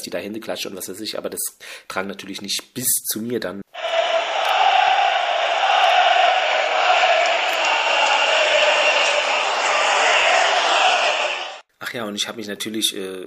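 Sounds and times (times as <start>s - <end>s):
speech: 0.0s - 3.6s, 11.8s - 13.2s
football fans chanting: 3.8s - 11.6s.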